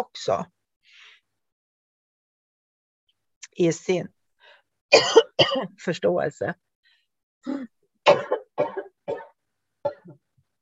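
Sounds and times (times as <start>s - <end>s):
speech: 0.0s - 0.6s, 3.6s - 4.2s, 4.9s - 6.7s, 7.4s - 8.4s
cough: 4.9s - 5.7s, 7.5s - 10.2s.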